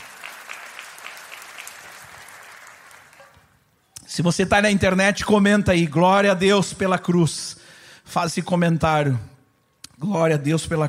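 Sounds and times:
audience applauding: 0:00.0 - 0:03.6
speech: 0:04.2 - 0:09.3, 0:10.0 - 0:10.8.

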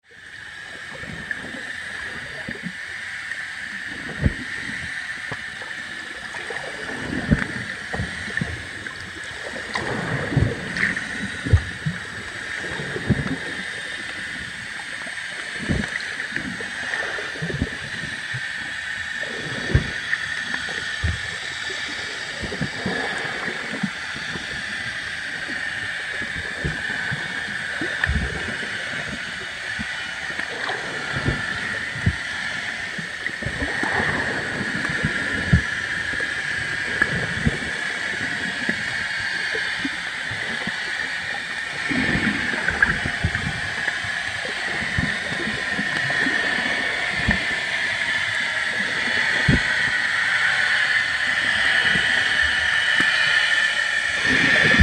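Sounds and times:
underwater ambience at Little Tribune Bay: 0:00.0 - 0:54.8.

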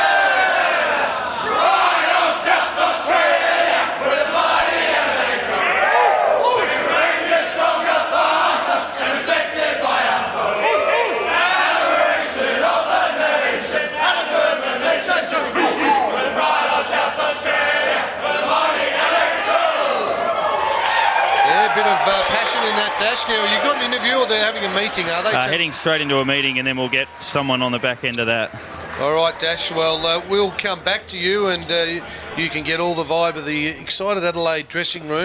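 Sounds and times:
football team singing club song: 0:00.0 - 0:20.5
football team celebrating victory: 0:00.0 - 0:33.6
speech: 0:24.0 - 0:35.2.

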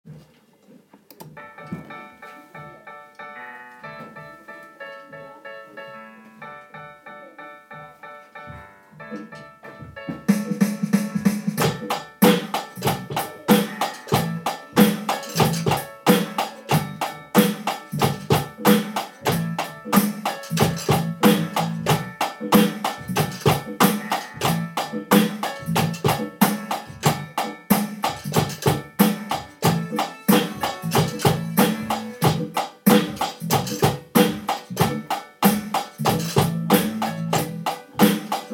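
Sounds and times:
drums: 0:08.4 - 0:38.5.

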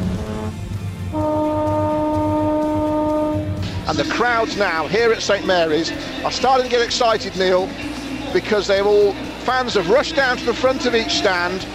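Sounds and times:
cruise ship horn sounding in reply: 0:00.0 - 0:03.8
speech: 0:03.9 - 0:11.7.

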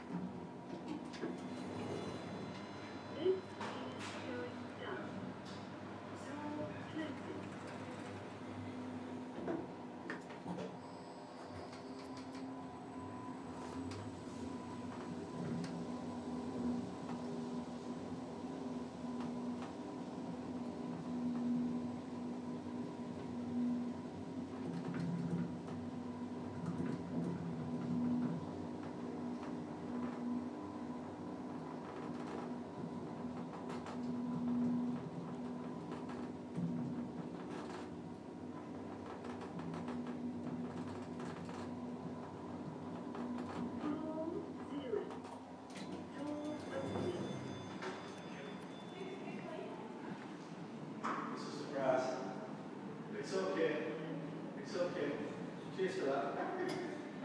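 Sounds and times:
City Inn lift interior ambience: 0:00.0 - 0:57.2.

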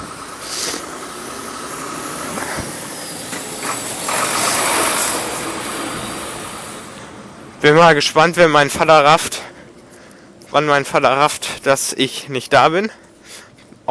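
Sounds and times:
truck passing by: 0:00.0 - 0:07.7
speech: 0:07.6 - 0:09.5, 0:10.5 - 0:13.0.

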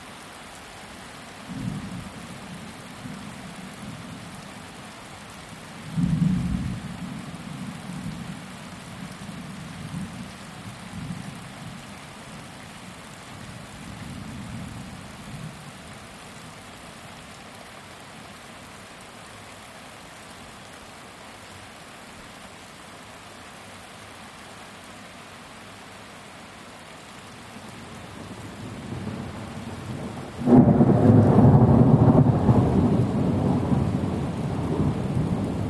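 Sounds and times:
thunderstorm heard from a caravan: 0:06.0 - 0:06.9, 0:28.7 - 0:35.6.

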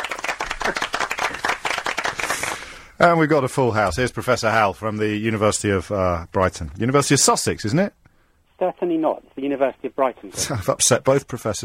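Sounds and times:
studio audience applause: 0:00.0 - 0:02.8
speech: 0:00.7 - 0:00.9, 0:03.0 - 0:08.0, 0:08.6 - 0:11.6.

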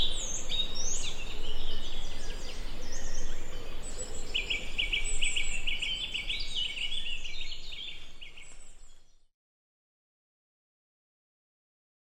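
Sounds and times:
birdsong: 0:00.0 - 0:09.3.

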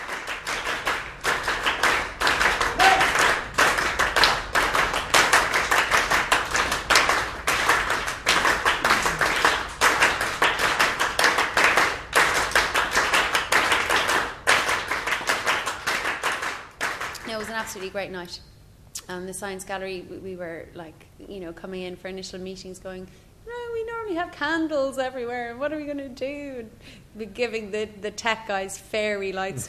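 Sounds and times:
rhythmic hand clapping: 0:00.0 - 0:18.0
speech: 0:17.7 - 0:18.5, 0:19.1 - 0:23.2, 0:24.1 - 0:29.6.

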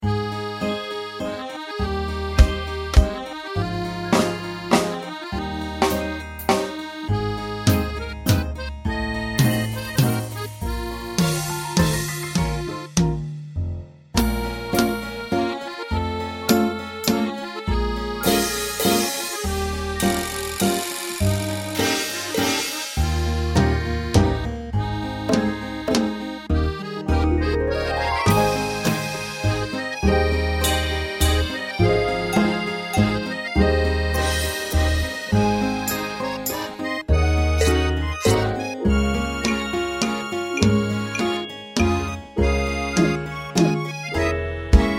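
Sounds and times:
waltz in 3/4 time: 0:00.0 - 0:13.3, 0:14.2 - 0:44.9.

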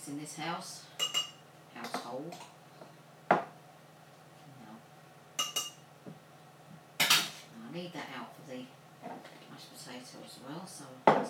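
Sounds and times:
speech: 0:00.1 - 0:00.9, 0:01.8 - 0:02.6, 0:07.8 - 0:11.2
spoon clinking against a dish adding mustard in a home kitchen: 0:01.0 - 0:01.4, 0:05.4 - 0:05.8.

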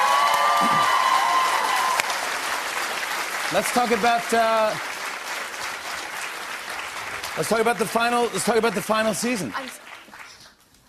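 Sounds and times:
audience applause: 0:00.0 - 0:10.6
speech: 0:00.6 - 0:01.0, 0:03.5 - 0:04.9, 0:07.4 - 0:09.8.

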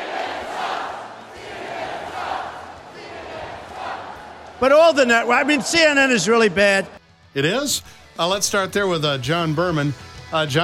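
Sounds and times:
large rally crowd chanting in unison: 0:00.0 - 0:06.2
speech: 0:04.6 - 0:10.6.

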